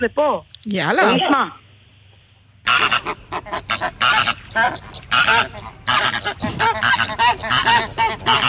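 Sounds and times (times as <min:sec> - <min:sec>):
speech: 0:00.0 - 0:01.6, 0:03.0 - 0:08.4
flamingo calls: 0:02.6 - 0:08.4.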